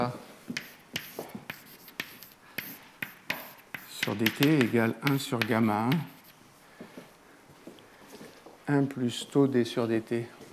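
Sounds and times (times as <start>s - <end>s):
marker or chalk writing an equation on a board: 0.5s - 6.4s
speech: 4.1s - 6.2s, 8.7s - 10.4s.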